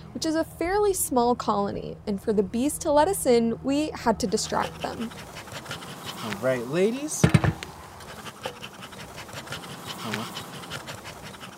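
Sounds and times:
speech: 0:00.2 - 0:05.4, 0:06.2 - 0:07.6
beekeeper's smoker pumping smoke into hive: 0:04.1 - 0:11.5.

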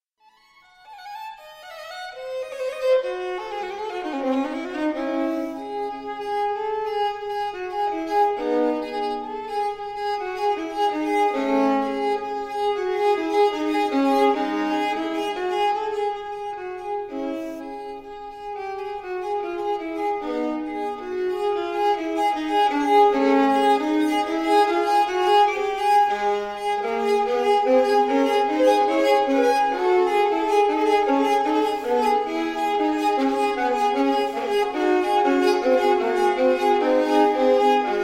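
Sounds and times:
strings: 0:00.2 - 0:38.0.

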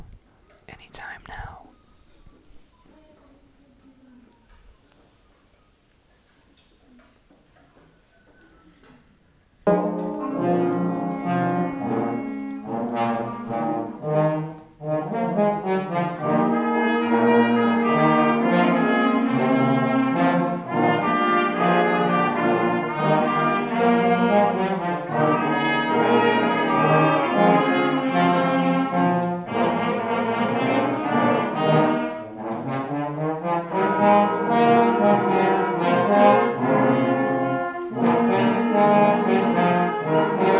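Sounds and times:
brass ensemble playing in concert: 0:09.6 - 0:40.5.

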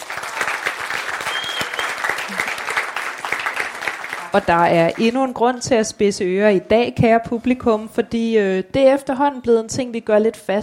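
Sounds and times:
audience applause: 0:00.0 - 0:04.7
speech: 0:04.4 - 0:10.6.

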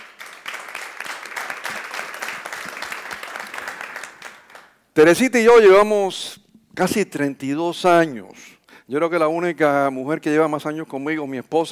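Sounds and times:
crowd clapping: 0:00.0 - 0:04.8
speech: 0:05.0 - 0:11.7.

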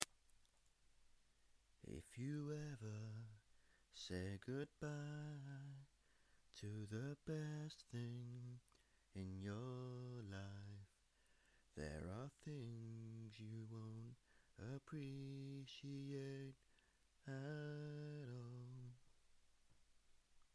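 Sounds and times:
short a cappella singing: 0:01.8 - 0:11.0, 0:11.8 - 0:16.6, 0:17.2 - 0:19.0.

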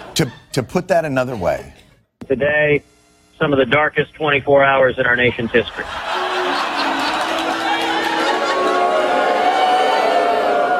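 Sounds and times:
speech: 0:00.2 - 0:06.1
laughter: 0:05.4 - 0:10.7
crowd chanting: 0:06.5 - 0:10.7.

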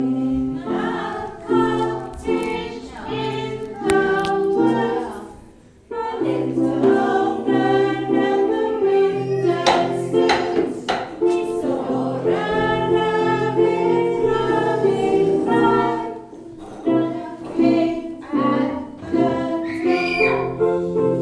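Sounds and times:
class singing: 0:00.0 - 0:21.2.

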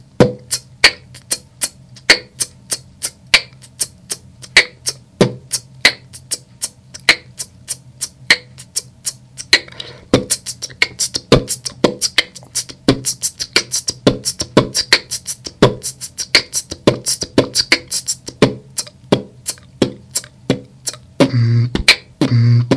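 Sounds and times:
beatbox: 0:00.0 - 0:22.7.

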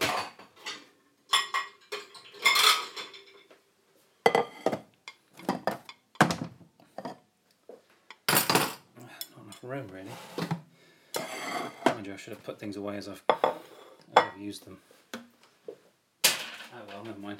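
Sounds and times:
plates and cutlery clinking while pasta is dished up: 0:00.0 - 0:03.5, 0:04.3 - 0:06.0, 0:11.2 - 0:12.0, 0:13.3 - 0:14.4
speech: 0:09.6 - 0:10.5, 0:12.0 - 0:13.7, 0:14.4 - 0:15.0, 0:16.8 - 0:17.3.

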